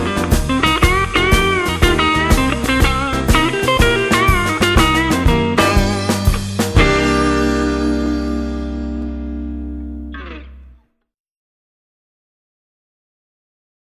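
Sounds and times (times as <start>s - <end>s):
blues jazz music: 0.0s - 10.8s.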